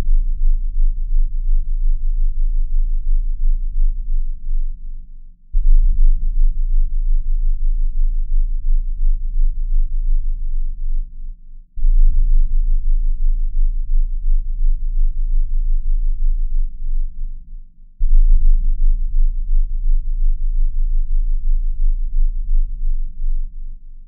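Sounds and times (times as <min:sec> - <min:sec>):
20Hz to 30Hz low frequency tone: 0:00.0 - 0:24.0.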